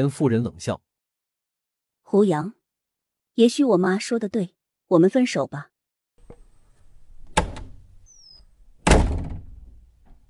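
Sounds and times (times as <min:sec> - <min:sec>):
speech: 0:00.0 - 0:00.9, 0:02.1 - 0:02.6, 0:03.4 - 0:05.7
door slamming shut: 0:07.0 - 0:08.1, 0:08.7 - 0:10.2.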